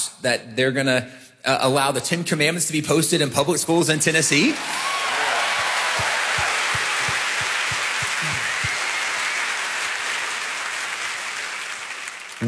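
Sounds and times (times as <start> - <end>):
speech: 0.2 - 5.0
audience applause in the room: 4.4 - 12.4.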